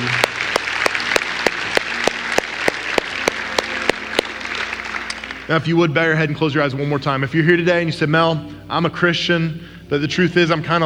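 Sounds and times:
audience applause: 0.0 - 5.8
speech: 5.5 - 10.8.

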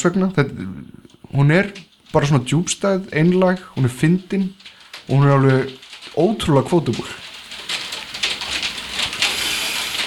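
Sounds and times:
speech: 0.0 - 7.2
hail falling outside: 3.1 - 10.0.

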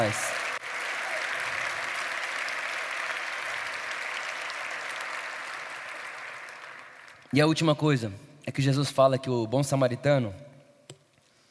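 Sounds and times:
speech: 0.0 - 0.4, 7.3 - 10.5
audience applause: 0.0 - 7.4.

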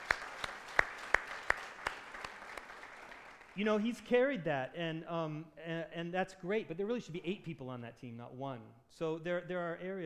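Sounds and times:
round of applause: 0.0 - 3.6
speech: 3.6 - 10.0.

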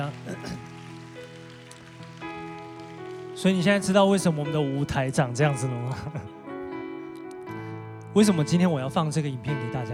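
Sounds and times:
audience clapping hands: 0.0 - 4.6
speech: 3.4 - 6.4, 8.2 - 9.9.

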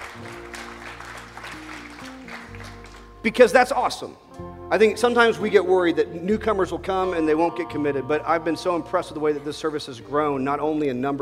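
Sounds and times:
audience applause: 0.0 - 3.1
speech: 3.2 - 11.1.

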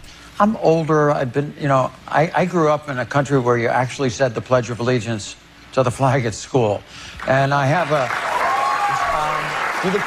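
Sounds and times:
speech: 0.4 - 8.3, 9.8 - 10.0
studio audience applause on Jimmy Kimmel's late-night talk show: 7.2 - 10.0.

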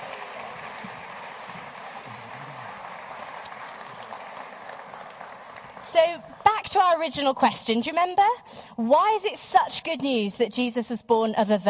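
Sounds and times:
crowd clapping: 0.0 - 7.2
speech: 5.9 - 11.6.

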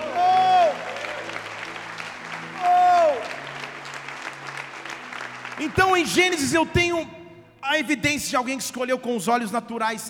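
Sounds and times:
cheering shouts: 0.0 - 1.5, 2.5 - 3.5
audience applauding: 0.0 - 6.8
speech: 5.6 - 10.0.

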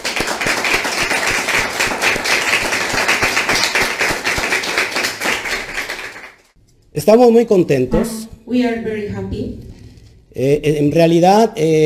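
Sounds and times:
applause: 0.0 - 6.5
speech: 7.0 - 9.7, 10.3 - 11.8.

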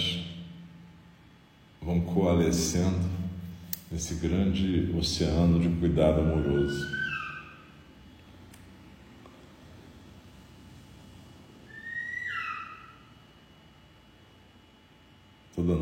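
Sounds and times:
speech: 1.9 - 3.2, 3.9 - 7.0
bird calling, possibly an owl: 6.2 - 7.9, 11.6 - 13.2.

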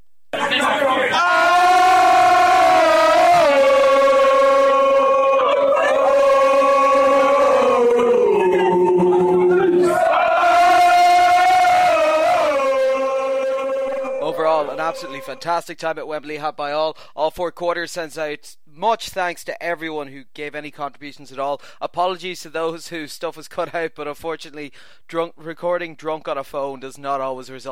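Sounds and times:
crowd doing a chant: 0.4 - 15.4
laughter: 7.4 - 10.6, 13.4 - 15.4
speech: 15.0 - 27.6.

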